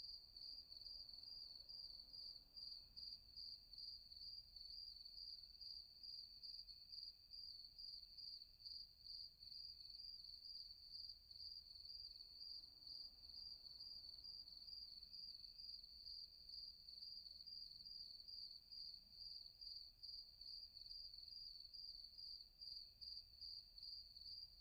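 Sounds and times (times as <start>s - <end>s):
cricket chirping: 0.0s - 24.5s.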